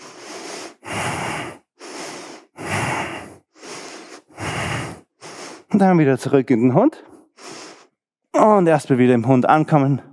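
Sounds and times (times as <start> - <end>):
deep breaths during relaxation exercise: 0.0 - 5.7, 7.0 - 8.0
speech: 5.8 - 7.1, 8.4 - 10.1.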